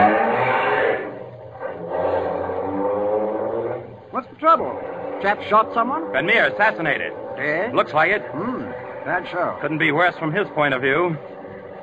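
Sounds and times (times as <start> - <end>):
car accelerating away: 0.0 - 11.8
speech: 4.4 - 11.8.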